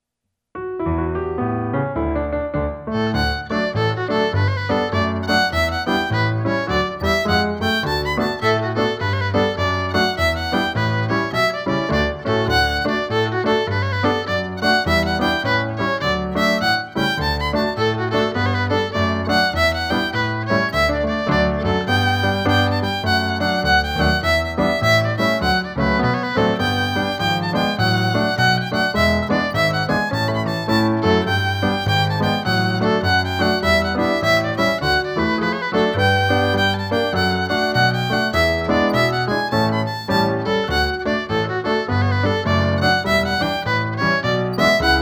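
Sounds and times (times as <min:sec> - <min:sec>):
fiddler's jig: 0:01.3 - 0:44.9.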